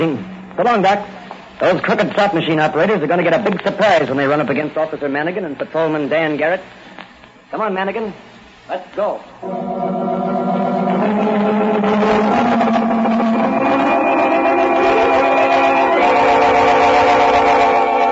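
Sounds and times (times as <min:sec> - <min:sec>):
speech: 0:00.0 - 0:06.9, 0:07.5 - 0:10.0
police car siren wailing: 0:09.4 - 0:18.1.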